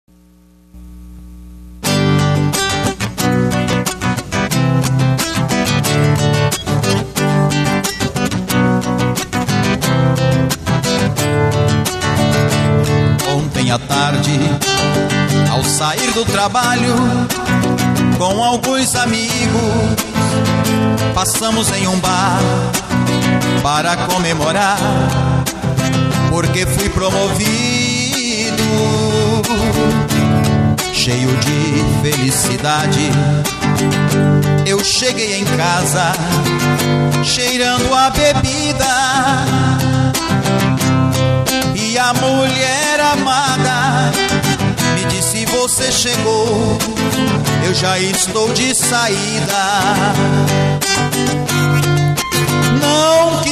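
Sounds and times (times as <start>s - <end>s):
acoustic guitar: 0.1s - 53.5s
person singing: 13.1s - 33.8s, 34.6s - 40.8s, 41.5s - 51.3s, 52.4s - 53.5s.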